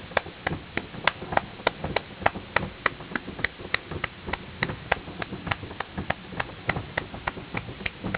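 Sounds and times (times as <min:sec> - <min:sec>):
percussion: 0:00.0 - 0:08.1.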